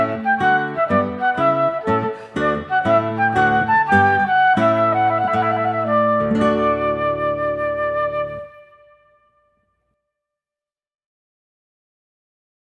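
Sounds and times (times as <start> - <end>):
trumpet piece: 0.0 - 9.4.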